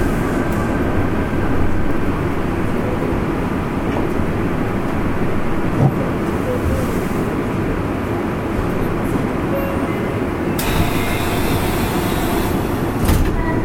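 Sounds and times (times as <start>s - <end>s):
Fukuoka city subway 3000 series train running on the Nanakuma Line: 0.0s - 13.6s.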